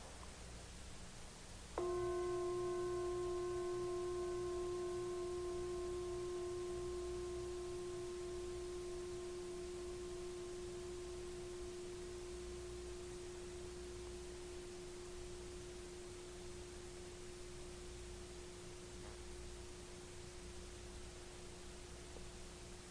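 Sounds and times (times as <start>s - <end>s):
gong ringing and fading: 1.8s - 19.7s.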